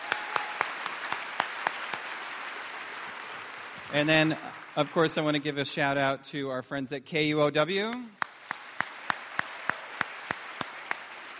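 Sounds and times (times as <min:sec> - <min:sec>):
audience round of applause: 0:00.0 - 0:05.8, 0:08.2 - 0:11.3
speech: 0:03.9 - 0:08.2.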